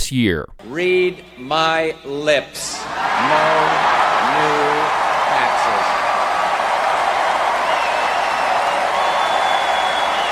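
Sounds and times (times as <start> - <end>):
speech: 0.1 - 6.1
crowd cheering sound effect: 2.8 - 10.3
high whistle: 7.6 - 10.3.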